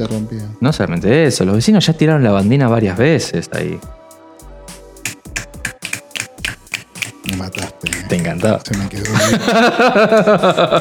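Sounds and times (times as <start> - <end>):
speech: 0.0 - 4.0, 8.3 - 10.8
finger snaps: 5.0 - 9.4
laughter: 7.5 - 10.8.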